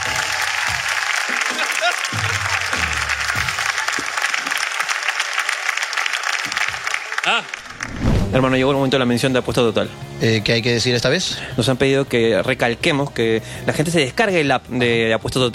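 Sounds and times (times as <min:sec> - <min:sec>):
audience applause: 0:00.0 - 0:08.0
speech: 0:07.3 - 0:07.6, 0:08.3 - 0:15.5.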